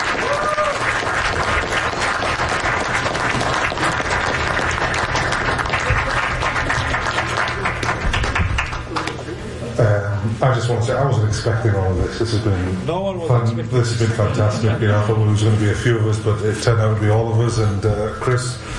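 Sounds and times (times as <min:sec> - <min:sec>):
audience round of applause: 0:00.0 - 0:09.2
speech: 0:10.5 - 0:18.6.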